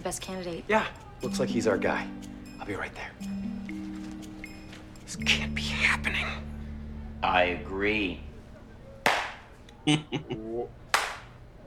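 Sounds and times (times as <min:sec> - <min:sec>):
speech: 0:00.0 - 0:03.5, 0:05.1 - 0:06.5, 0:07.2 - 0:08.3, 0:09.8 - 0:10.8
slow clap: 0:09.0 - 0:09.4, 0:10.9 - 0:11.3.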